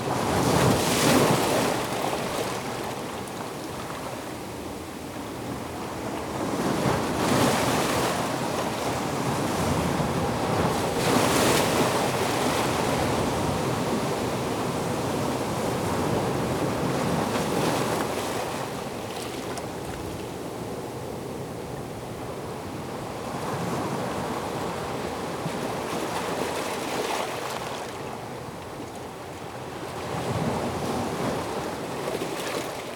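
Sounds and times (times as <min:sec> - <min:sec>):
sea on rocks: 0:00.1 - 0:32.9.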